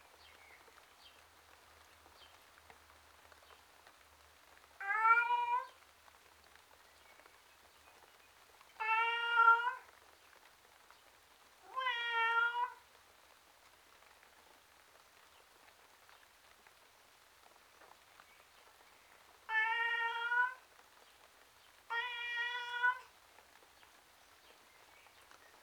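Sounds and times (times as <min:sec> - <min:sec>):
male tom cat meowing miserably outdoors: 0:04.8 - 0:05.8, 0:08.8 - 0:09.9, 0:11.6 - 0:12.8, 0:19.5 - 0:20.6, 0:21.9 - 0:23.1.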